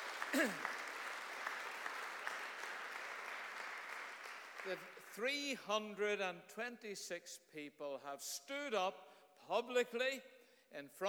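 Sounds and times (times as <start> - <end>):
audience round of applause: 0.0 - 5.1
speech: 0.3 - 0.7, 4.6 - 11.0.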